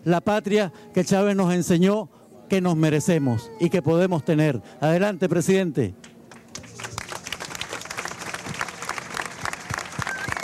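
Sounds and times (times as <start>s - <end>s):
speech: 0.0s - 6.1s
audience applause at a Venezuelan political event: 6.3s - 10.4s.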